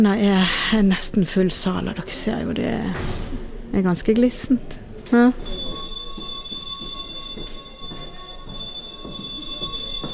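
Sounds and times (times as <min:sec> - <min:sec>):
speech: 0:00.0 - 0:05.7
theatre bell ringing: 0:05.4 - 0:10.1.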